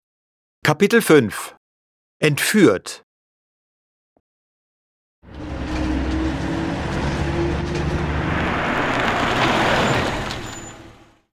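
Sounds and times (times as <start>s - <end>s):
speech: 0.7s - 1.6s, 2.2s - 3.0s
car journey: 5.3s - 11.1s.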